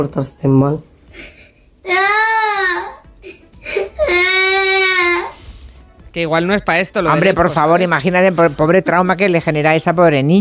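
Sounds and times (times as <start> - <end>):
speech: 0.0 - 2.1, 6.2 - 10.4
little girl crying over her torn pajamas: 1.2 - 5.4.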